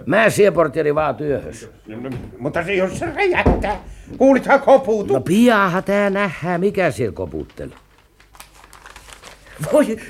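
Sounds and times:
speech: 0:00.0 - 0:07.8, 0:09.6 - 0:10.0
package paper crinkling and tearing as a package is unwrapped: 0:07.2 - 0:10.0.

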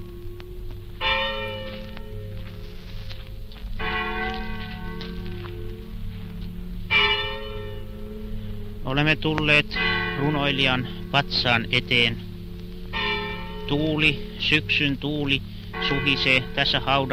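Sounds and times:
Tuusula church bells ringing in an autumn evening: 0:00.0 - 0:17.1
speech: 0:08.9 - 0:12.3, 0:13.7 - 0:17.1.

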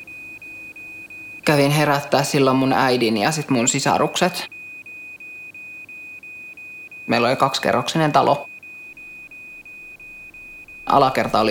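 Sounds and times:
smoke alarm beeping: 0:00.0 - 0:11.4
speech: 0:01.5 - 0:04.6, 0:07.1 - 0:08.5, 0:10.9 - 0:11.4.

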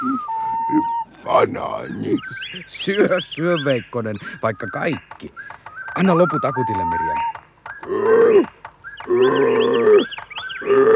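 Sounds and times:
speech: 0:01.3 - 0:10.1
ape growling: 0:07.8 - 0:08.5, 0:09.1 - 0:10.9.

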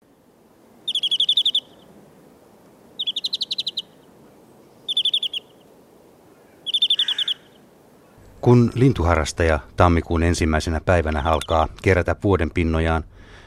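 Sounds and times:
European greenfinch song: 0:00.8 - 0:02.0, 0:03.0 - 0:04.1, 0:04.8 - 0:05.8, 0:06.4 - 0:07.7, 0:11.2 - 0:11.7
speech: 0:08.4 - 0:13.4.

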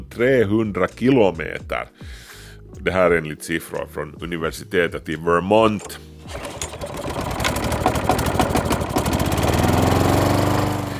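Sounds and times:
speech: 0:00.2 - 0:06.6
lawn mower engine running: 0:06.2 - 0:10.9.

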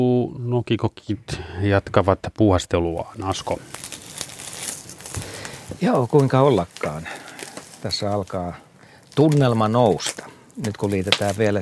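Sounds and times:
speech: 0:00.0 - 0:03.8, 0:05.8 - 0:07.2, 0:07.8 - 0:11.5
campfire crackling and popping: 0:03.1 - 0:11.5.

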